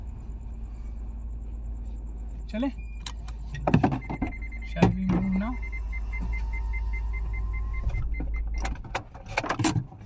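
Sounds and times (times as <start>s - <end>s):
car engine rumble: 0.0s - 10.0s
speech: 2.5s - 2.9s, 4.8s - 5.7s
car power windows closing: 3.0s - 9.1s.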